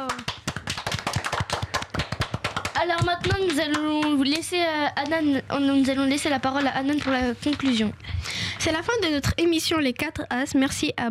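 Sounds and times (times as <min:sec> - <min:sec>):
small group clapping for a quiz participant: 0:00.0 - 0:05.3, 0:06.4 - 0:07.9
speech: 0:02.8 - 0:11.1.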